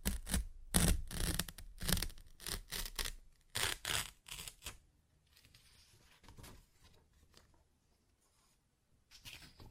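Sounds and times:
paper ripped and torn: 0.1s - 4.8s.

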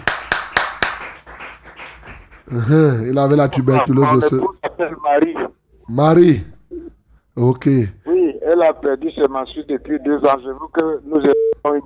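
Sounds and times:
church congregation hand clapping praising the Lord: 0.0s - 3.7s
speech: 2.5s - 6.5s, 7.4s - 11.8s.

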